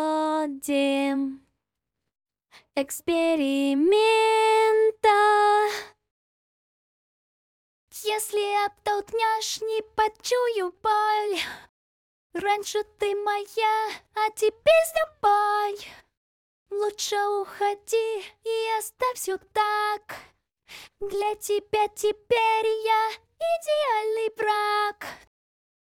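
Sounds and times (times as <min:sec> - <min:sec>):
a cappella singing: 0:00.0 - 0:01.5, 0:02.8 - 0:06.0, 0:08.0 - 0:11.3, 0:12.4 - 0:16.0, 0:16.7 - 0:20.2, 0:21.0 - 0:25.2.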